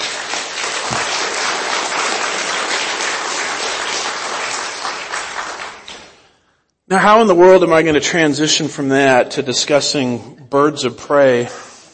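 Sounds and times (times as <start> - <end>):
audience applause: 0.0 - 6.2
speech: 6.9 - 11.6.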